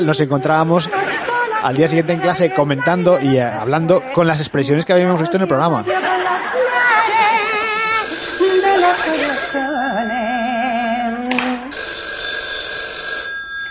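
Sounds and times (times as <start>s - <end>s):
speech: 0.0s - 6.5s, 8.6s - 10.4s
laughter: 0.3s - 4.4s, 5.4s - 10.1s
telephone ringing: 8.0s - 11.1s, 11.7s - 13.7s.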